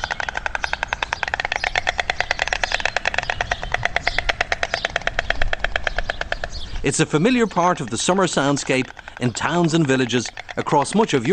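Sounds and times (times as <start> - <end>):
white storks clapping beaks at nest: 0.0 - 11.3
speech: 6.8 - 11.3.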